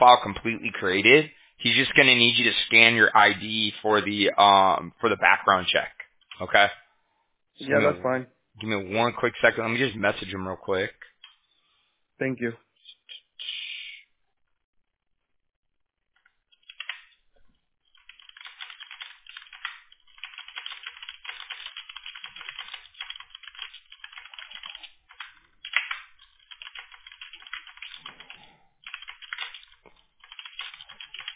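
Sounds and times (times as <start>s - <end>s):
speech: 0.0s - 6.8s, 7.6s - 11.1s, 12.2s - 12.6s
fast typing on a computer keyboard: 16.2s - 17.2s, 17.9s - 31.3s.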